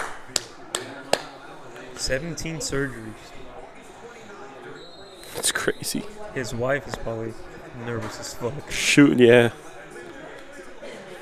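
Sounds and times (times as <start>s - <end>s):
hand clapping: 0.0s - 1.3s
speech: 2.0s - 3.4s, 5.4s - 9.7s.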